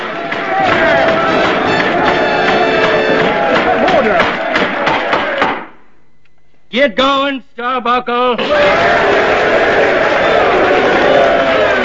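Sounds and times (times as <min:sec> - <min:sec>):
enthusiastic crowd cheering and shouting at a convention: 0:00.0 - 0:05.6, 0:08.4 - 0:11.8
speech: 0:06.8 - 0:09.9.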